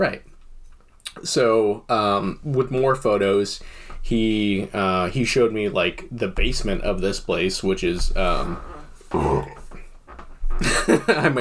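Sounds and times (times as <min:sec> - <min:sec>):
speech: 0:00.0 - 0:00.3, 0:01.2 - 0:09.5, 0:10.6 - 0:11.4
person burping: 0:08.4 - 0:09.8
throaty grunt: 0:08.6 - 0:09.8
laughter: 0:10.6 - 0:11.4.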